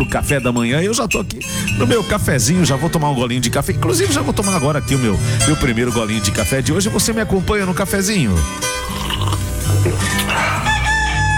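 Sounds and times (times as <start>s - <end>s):
speech: 0.1s - 9.1s
rooster crowing: 10.0s - 11.3s.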